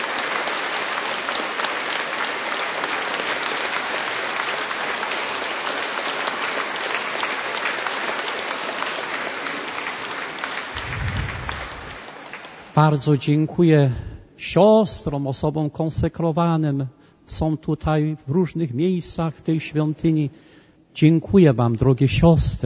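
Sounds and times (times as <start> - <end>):
audience applauding: 0.0 - 13.0
speech: 12.8 - 22.6.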